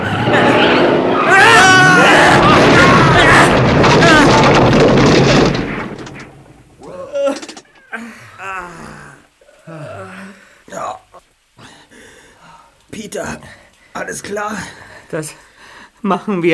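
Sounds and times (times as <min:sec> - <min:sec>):
vehicle crashing into rock face during landslide: 0:00.0 - 0:07.9
vehicle tyres squealing: 0:00.0 - 0:09.7
speech: 0:13.1 - 0:15.4, 0:16.0 - 0:16.5.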